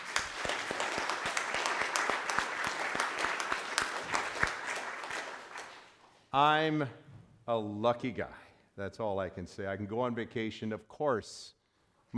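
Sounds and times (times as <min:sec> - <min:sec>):
audience applause: 0:00.0 - 0:05.9
speech: 0:06.4 - 0:12.1.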